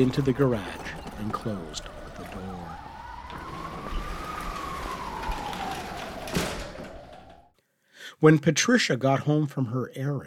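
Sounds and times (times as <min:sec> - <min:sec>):
speech: 0:00.0 - 0:02.8, 0:08.2 - 0:10.2
emergency vehicle sirens: 0:00.0 - 0:07.6.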